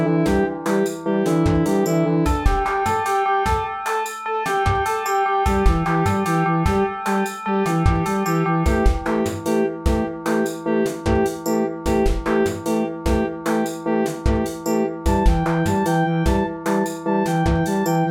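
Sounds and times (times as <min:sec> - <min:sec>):
electronic song: 0:00.0 - 0:18.0.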